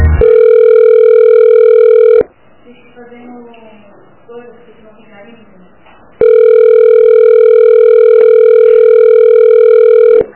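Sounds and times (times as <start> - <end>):
telephone tone after a dropped phone call: 0.2 - 2.3, 6.2 - 10.3.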